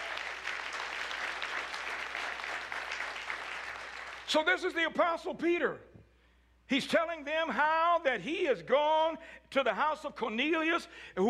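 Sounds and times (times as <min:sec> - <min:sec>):
audience clapping: 0:00.0 - 0:04.3
speech: 0:04.3 - 0:05.9, 0:06.7 - 0:11.2.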